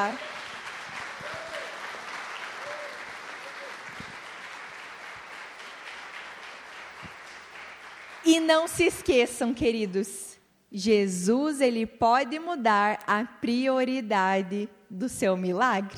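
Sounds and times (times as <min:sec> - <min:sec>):
speech: 0:00.0 - 0:00.3, 0:08.3 - 0:15.9
crowd applauding: 0:00.0 - 0:08.4.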